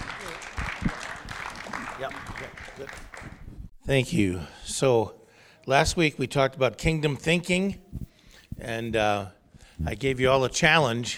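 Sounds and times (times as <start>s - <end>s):
audience applause welcoming speaker: 0.0s - 3.5s
speech: 2.0s - 3.2s, 3.9s - 7.9s, 8.6s - 11.1s.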